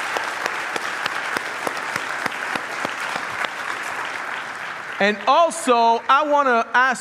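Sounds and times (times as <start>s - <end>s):
sharp individual claps: 0.0s - 5.3s
crowd applauding: 0.0s - 6.9s
speech: 5.0s - 6.9s.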